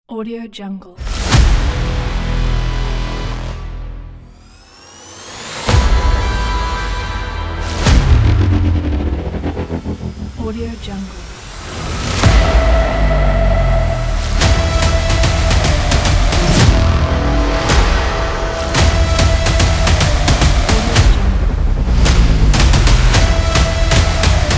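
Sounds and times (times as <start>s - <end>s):
cinematic epic trailer intro music: 1.0s - 24.5s.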